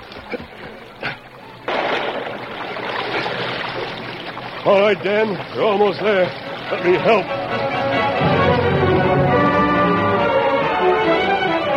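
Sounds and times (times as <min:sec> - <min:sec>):
water splashing as someone swims out, drama sound effect: 0:00.0 - 0:09.5
water churning as someone swims: 0:00.0 - 0:11.7
speech: 0:04.7 - 0:07.4.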